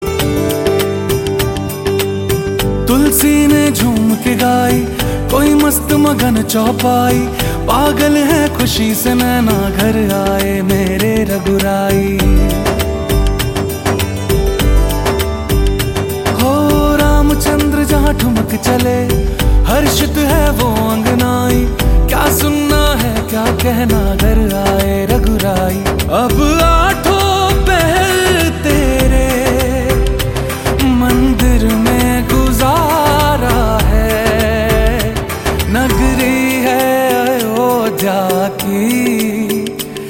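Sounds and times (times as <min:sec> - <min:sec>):
Hindu bhajan devotional song: 0:00.0 - 0:40.0.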